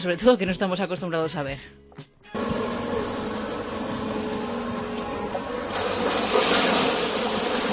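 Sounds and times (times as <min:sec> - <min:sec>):
speech: 0:00.0 - 0:02.4
amphibious excavator dredging the ría de Burgo: 0:02.4 - 0:07.7.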